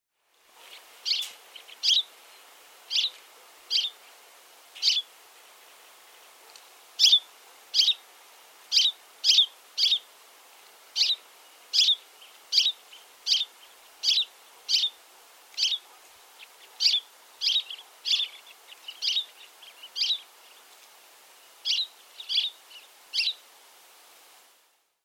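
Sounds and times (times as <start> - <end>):
finch high chirps: 0.6 - 2.1, 2.9 - 4.0, 4.8 - 5.1, 7.0 - 8.0, 8.7 - 10.0, 11.0 - 15.0, 15.6 - 20.6, 21.6 - 23.4.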